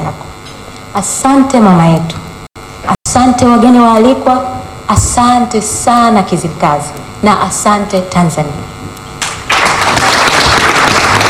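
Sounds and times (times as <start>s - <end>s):
speech: 1.0s - 2.2s, 3.2s - 8.7s
audience clapping after a welcome speech in Kizimkazi, Tanzania: 9.2s - 11.2s.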